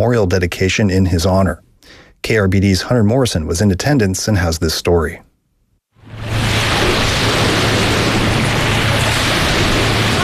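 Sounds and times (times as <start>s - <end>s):
speech: 0.0s - 5.2s
distant crashing waves at Refuge Cove State Recreation Area: 6.0s - 10.2s.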